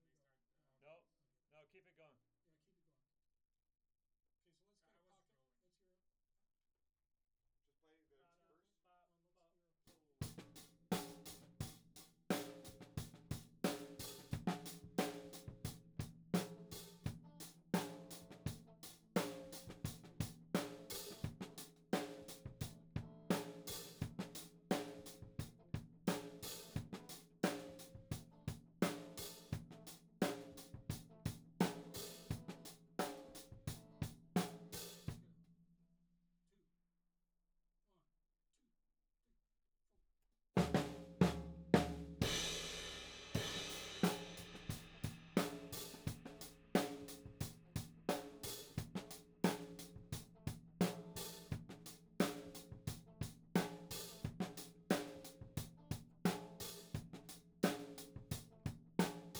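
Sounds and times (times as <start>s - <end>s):
tom drum: 10.2s - 35.2s, 40.6s - 59.3s.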